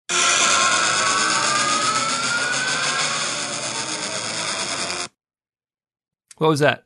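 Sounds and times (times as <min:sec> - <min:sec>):
imitated pod racer engine roaring whine: 0:00.0 - 0:05.1
speech: 0:06.4 - 0:06.8.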